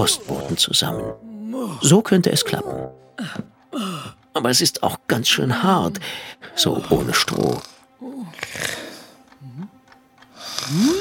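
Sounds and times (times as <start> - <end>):
speech: 0.0 - 7.7, 10.7 - 11.0
loud snoring: 8.3 - 9.1.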